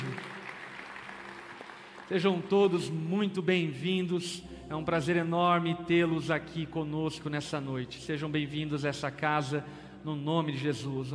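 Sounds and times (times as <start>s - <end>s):
church audience applause: 0.0s - 2.8s
speech: 2.1s - 11.1s.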